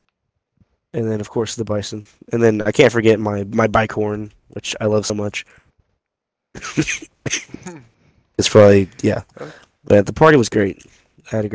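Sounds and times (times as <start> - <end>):
speech: 0.9 - 5.6, 6.6 - 11.5
cough: 6.6 - 8.0.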